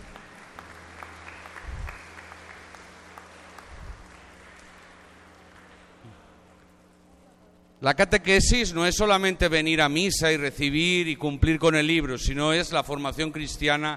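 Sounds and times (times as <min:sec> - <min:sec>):
audience applause: 0:00.0 - 0:06.2
speech: 0:07.8 - 0:13.9.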